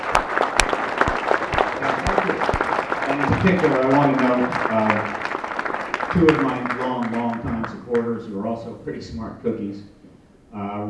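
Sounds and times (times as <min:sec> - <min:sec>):
audience round of applause: 0:00.0 - 0:08.2
speech: 0:03.4 - 0:05.2, 0:06.1 - 0:10.8.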